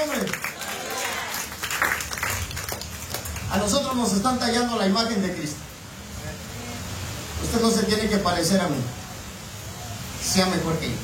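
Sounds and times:
church congregation clapping as an offering of praise to God: 0.0 - 4.1
speech: 3.6 - 5.7, 7.4 - 9.0, 10.3 - 11.0.

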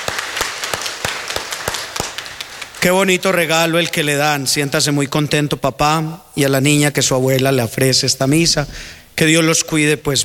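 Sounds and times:
audience applause: 0.0 - 2.8
speech: 2.8 - 10.2.

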